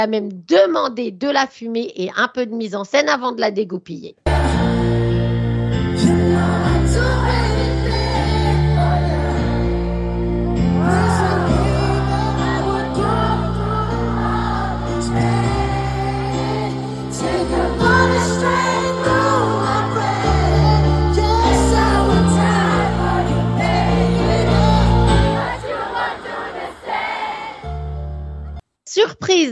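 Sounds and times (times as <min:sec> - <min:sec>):
speech: 0:00.0 - 0:05.0, 0:29.0 - 0:29.5
loud live music: 0:04.3 - 0:25.4
large concert crowd singing along in chorus: 0:04.3 - 0:28.0.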